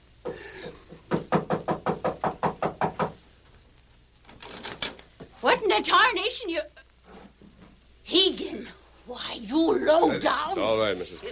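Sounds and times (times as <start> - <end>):
knocking on a door: 1.0 - 3.2
speech: 5.5 - 6.7, 8.1 - 11.3
shuffling sounds: 7.0 - 7.8.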